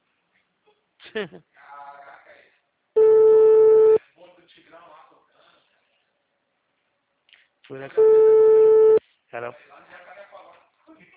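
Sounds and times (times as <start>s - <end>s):
speech: 1.1s - 1.6s, 7.7s - 8.7s, 9.3s - 9.9s
telephone ringback tone while a call is placed: 3.0s - 4.0s, 8.0s - 9.0s.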